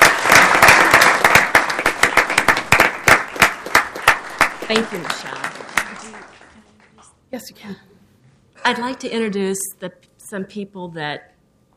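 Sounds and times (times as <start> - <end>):
applause: 0.0 - 7.1
speech: 4.7 - 5.5, 7.3 - 7.9, 8.6 - 11.3.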